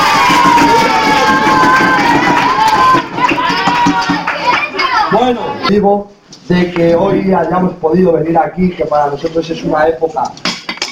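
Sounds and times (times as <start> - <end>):
children cheering: 0.0 - 5.2
speech: 5.7 - 10.5.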